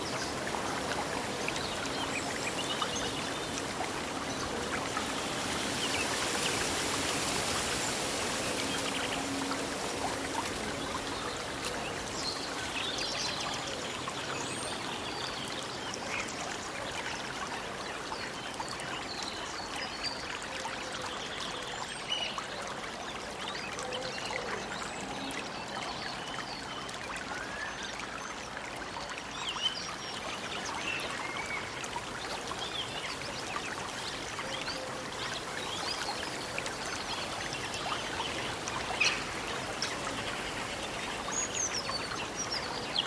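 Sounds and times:
rustling leaves: 0:00.0 - 0:16.8, 0:29.9 - 0:43.0
running water in a forest: 0:00.0 - 0:43.0.

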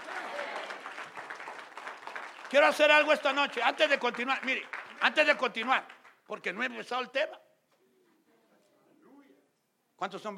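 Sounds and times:
applause: 0:00.0 - 0:06.3
speech: 0:02.5 - 0:07.4, 0:10.0 - 0:10.3.

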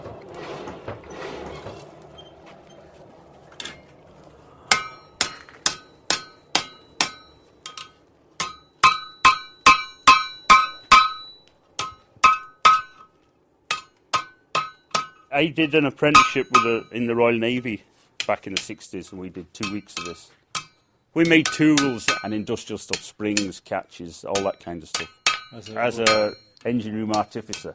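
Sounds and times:
blacksmith hammering hot metal on anvil: 0:04.7 - 0:13.1, 0:13.7 - 0:15.3, 0:16.1 - 0:17.1, 0:19.6 - 0:23.6, 0:24.3 - 0:27.7
speech: 0:15.4 - 0:20.4, 0:21.2 - 0:27.7.

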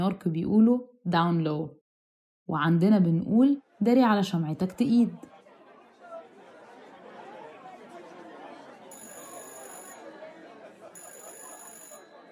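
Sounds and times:
speech: 0:00.0 - 0:01.8, 0:02.5 - 0:05.3
laughter: 0:05.0 - 0:12.3
telephone ringing: 0:08.9 - 0:12.3.

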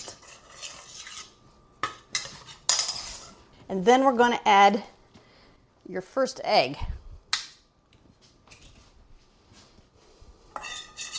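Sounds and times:
utensil scraping a bowl mixing moist brown sugar mixture for Congo bars: 0:00.0 - 0:03.5, 0:10.5 - 0:11.1
speech: 0:03.7 - 0:04.9, 0:05.9 - 0:06.9.

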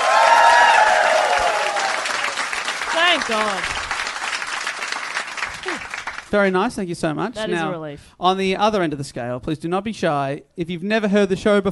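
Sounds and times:
audience applause: 0:00.0 - 0:06.4
speech: 0:03.2 - 0:03.8, 0:05.6 - 0:11.7.

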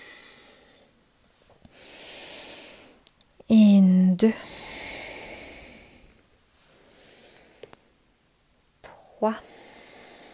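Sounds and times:
slow soft exhale during a seated forward-bend yoga stretch: 0:00.0 - 0:01.0, 0:01.7 - 0:03.0, 0:04.4 - 0:07.8, 0:09.4 - 0:10.3
faint small clicks: 0:02.9 - 0:04.0, 0:07.3 - 0:08.1
speech: 0:03.5 - 0:04.5, 0:09.2 - 0:09.6.

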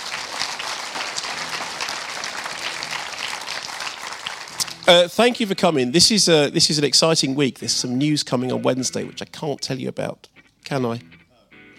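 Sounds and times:
audience applause: 0:00.0 - 0:05.2
speech: 0:04.9 - 0:11.2.

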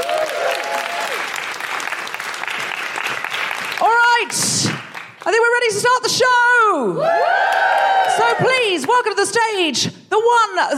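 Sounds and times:
audience applause: 0:00.0 - 0:05.2, 0:07.1 - 0:08.9
speech: 0:04.2 - 0:10.7.

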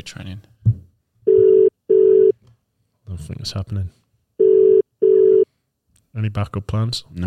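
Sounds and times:
speech: 0:00.0 - 0:00.5, 0:03.2 - 0:04.0, 0:06.2 - 0:07.2
phone dialing tone: 0:01.3 - 0:02.3, 0:04.4 - 0:05.5.

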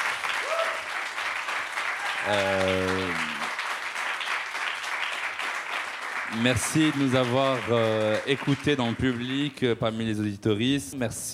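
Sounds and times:
audience applause: 0:00.0 - 0:09.8
vocal cheer: 0:00.4 - 0:00.9, 0:02.0 - 0:03.5
speech: 0:02.2 - 0:03.4, 0:06.3 - 0:11.3.

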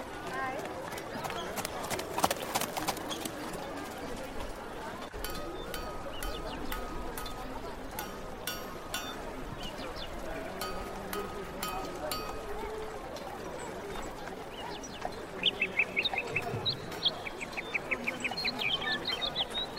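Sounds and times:
murmuring voices in medieval life ambience: 0:00.0 - 0:19.7
quick bright bird chirps: 0:05.1 - 0:12.7, 0:13.6 - 0:19.7.

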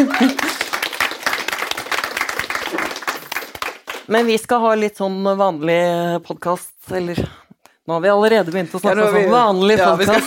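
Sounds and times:
laughter: 0:00.0 - 0:00.8, 0:09.8 - 0:10.2
audience applause: 0:00.0 - 0:04.1
speech: 0:04.1 - 0:10.2.

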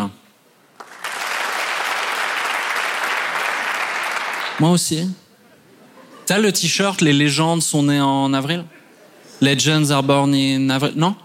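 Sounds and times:
audience applause: 0:00.8 - 0:04.7
speech: 0:04.6 - 0:05.2, 0:06.3 - 0:08.8, 0:09.4 - 0:11.2.

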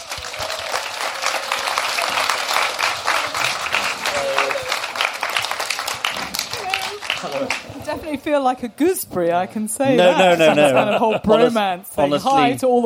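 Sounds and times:
audience applause for a guest at a talk: 0:00.0 - 0:08.0
laughter: 0:07.1 - 0:07.8, 0:09.9 - 0:11.7
speech: 0:07.2 - 0:12.8.

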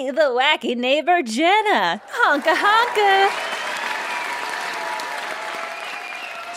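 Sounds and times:
speech: 0:00.1 - 0:03.5
studio audience applause: 0:02.0 - 0:06.5.

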